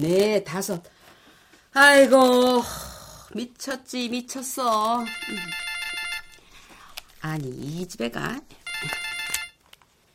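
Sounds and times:
speech: 0.0 - 1.0, 1.7 - 5.7, 7.2 - 9.1
phone ringtone: 5.0 - 6.6, 8.6 - 9.6.

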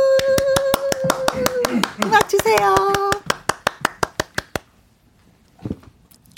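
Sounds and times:
rhythmic hand clapping: 0.2 - 4.7.

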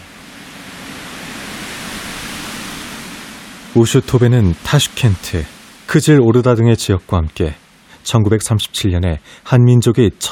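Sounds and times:
wind rustling through reeds: 0.0 - 6.2
speech: 3.8 - 10.3.

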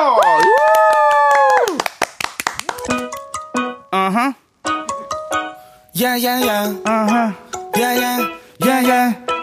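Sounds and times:
audience clapping: 0.0 - 3.4
speech: 6.0 - 9.2.

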